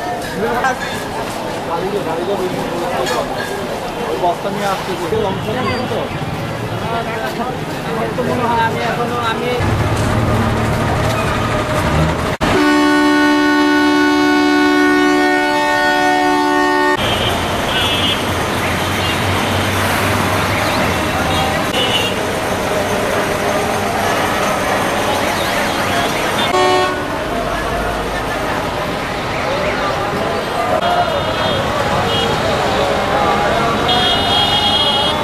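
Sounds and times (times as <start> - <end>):
traffic in Bangladesh: 0.0 - 35.2.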